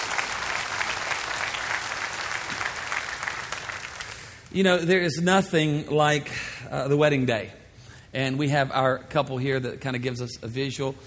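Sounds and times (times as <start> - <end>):
audience clapping hands: 0.0 - 4.5
speech: 4.5 - 11.0.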